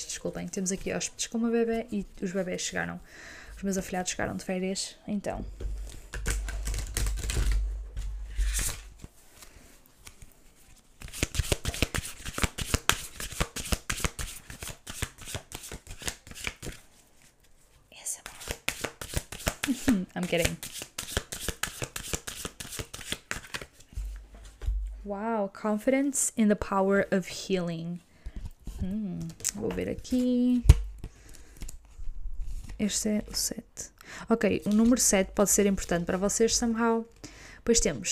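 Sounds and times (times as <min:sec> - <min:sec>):
speech: 0:00.0 - 0:05.8, 0:25.6 - 0:28.1, 0:28.8 - 0:30.8, 0:32.8 - 0:38.1
oracle cards being shuffled: 0:05.6 - 0:17.3, 0:18.2 - 0:24.7, 0:28.4 - 0:32.8, 0:34.6 - 0:36.0.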